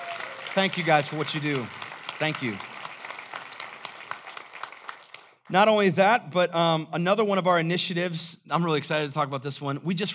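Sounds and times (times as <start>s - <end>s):
audience applauding: 0.0s - 5.5s
speech: 0.6s - 2.7s, 5.5s - 10.1s.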